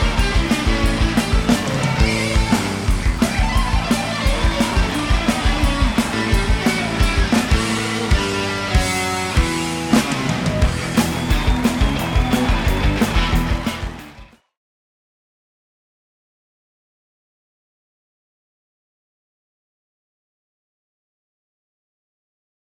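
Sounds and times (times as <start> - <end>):
rock guitar: 0.0 - 14.4.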